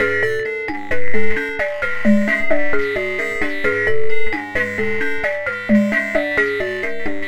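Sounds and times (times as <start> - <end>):
processed percussion: 0.0 - 7.2
sine wave: 0.0 - 7.2.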